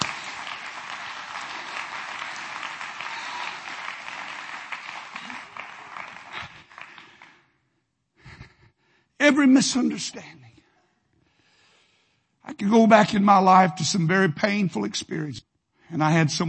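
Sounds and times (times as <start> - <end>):
audience clapping hands: 0.0 - 7.5
speech: 9.3 - 10.4, 12.6 - 16.4.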